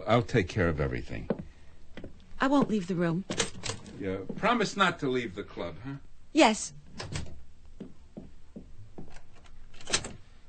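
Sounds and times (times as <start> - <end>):
speech: 0.1 - 1.4, 2.4 - 3.4, 4.0 - 7.2
door being shut and locked: 3.3 - 4.0, 6.9 - 7.4, 9.8 - 10.2.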